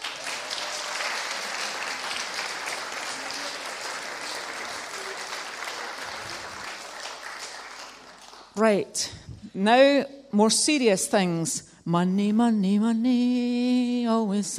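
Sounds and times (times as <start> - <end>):
audience clapping: 0.0 - 8.6
speech: 8.6 - 14.5.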